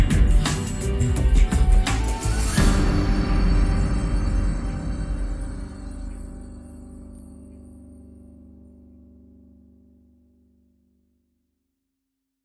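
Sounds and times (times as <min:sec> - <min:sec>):
drums: 0:00.0 - 0:07.6
Native American flutes: 0:00.6 - 0:06.9.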